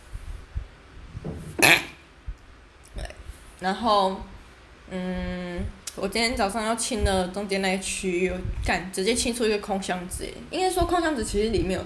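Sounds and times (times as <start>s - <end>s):
person sneezing: 1.6s - 2.0s
speech: 3.6s - 4.3s, 4.9s - 11.8s.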